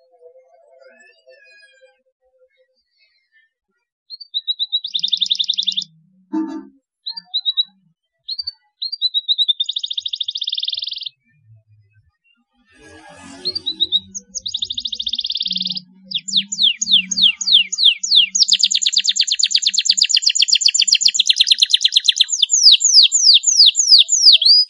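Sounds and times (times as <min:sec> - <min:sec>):
canary singing trills: 0:04.1 - 0:11.3, 0:12.8 - 0:24.6.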